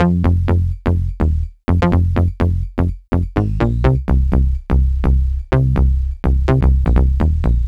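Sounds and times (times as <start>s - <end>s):
house bass loops: 0.0s - 7.6s.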